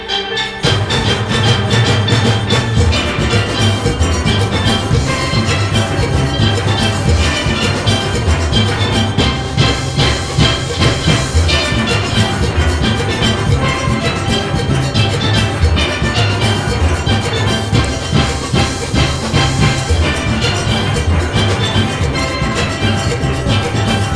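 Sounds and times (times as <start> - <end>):
rain melody: 0.0 - 24.1.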